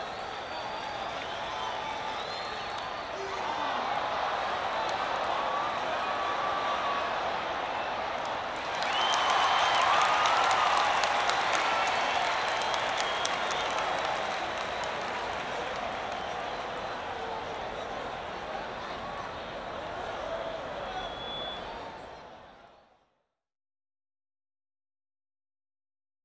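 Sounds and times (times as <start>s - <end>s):
baseball stadium crowd ambience outdoors with people: 0.0s - 23.2s.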